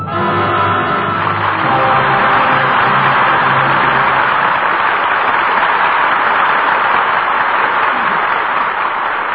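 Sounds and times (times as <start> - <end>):
audience applause: 0.2 - 9.3.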